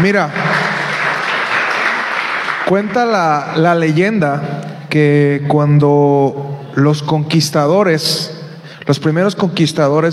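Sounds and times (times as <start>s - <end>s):
speech: 0.0s - 0.6s, 2.7s - 10.1s
audience applause: 0.0s - 3.4s.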